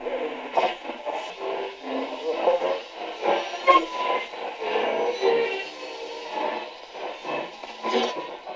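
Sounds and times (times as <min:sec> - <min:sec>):
radio: 0:00.0 - 0:04.6, 0:06.0 - 0:08.5.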